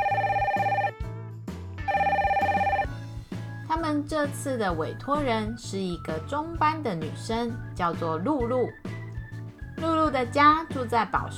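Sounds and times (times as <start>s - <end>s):
telephone ringing with trilling bell tones: 0.0s - 1.0s, 1.9s - 3.0s
speech: 4.1s - 8.9s, 9.8s - 11.3s.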